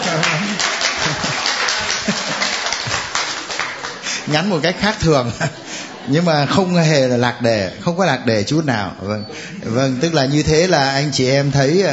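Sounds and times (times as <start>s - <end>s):
church congregation clapping hands: 0.0s - 5.0s
laughter: 0.0s - 7.8s, 9.2s - 10.4s
speech: 4.3s - 11.9s.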